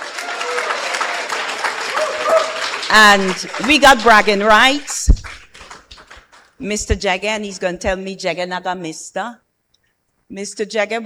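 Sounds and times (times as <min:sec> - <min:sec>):
audience applause and clapping: 0:00.0 - 0:06.5
speech: 0:02.9 - 0:05.0, 0:06.6 - 0:09.4, 0:10.3 - 0:11.0.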